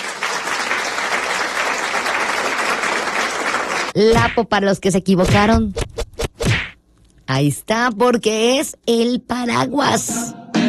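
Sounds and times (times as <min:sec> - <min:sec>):
audience applause: 0:00.0 - 0:04.0
speech: 0:04.0 - 0:05.8, 0:07.3 - 0:10.4.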